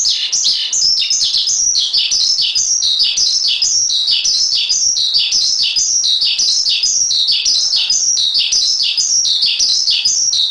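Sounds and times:
Asian pied starling singing: 0:00.0 - 0:10.4.

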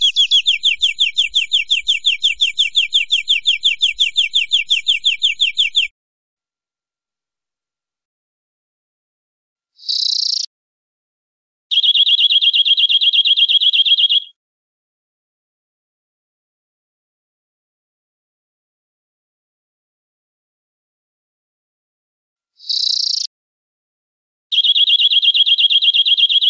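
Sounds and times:
European greenfinch buzzy trill: 0:00.0 - 0:05.9, 0:09.8 - 0:10.5, 0:11.7 - 0:14.3, 0:22.6 - 0:23.3, 0:24.5 - 0:26.4.

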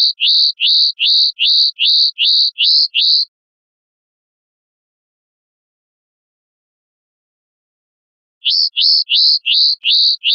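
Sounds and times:
European goldfinch whistling: 0:00.0 - 0:03.3, 0:08.4 - 0:10.3.

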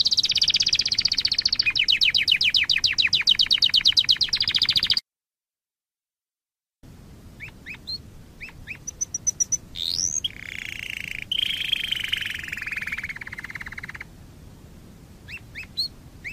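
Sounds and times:
Waterslager canary song: 0:00.0 - 0:05.0, 0:07.4 - 0:14.1, 0:15.2 - 0:16.3.

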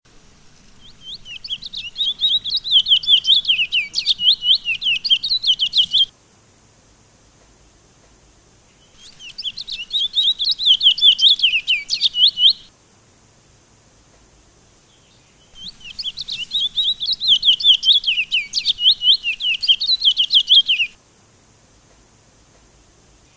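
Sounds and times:
Sunda laughingthrush song of quick high-pitched slurred chirps: 0:00.0 - 0:06.1, 0:09.0 - 0:12.7, 0:15.6 - 0:21.0.

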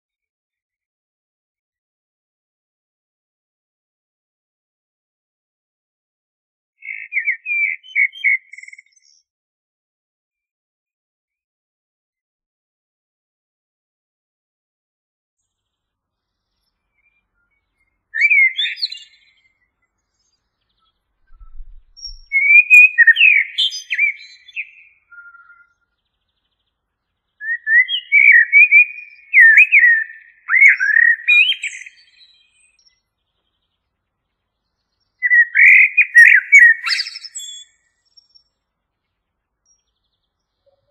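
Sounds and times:
blackbird: 0:06.8 - 0:09.3, 0:15.4 - 0:40.9.

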